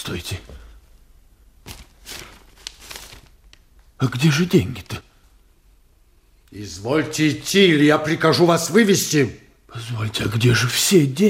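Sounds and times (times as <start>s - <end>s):
speech: 0.0s - 0.6s, 4.0s - 5.1s, 6.5s - 11.2s
paper package being picked up: 1.6s - 3.6s.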